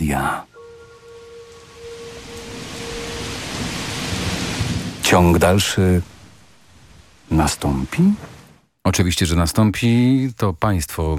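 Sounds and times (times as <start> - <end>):
rain outside the window: 0.0 - 8.7
speech: 0.1 - 0.5, 5.1 - 6.2, 7.3 - 11.1
low rumble: 0.5 - 7.8.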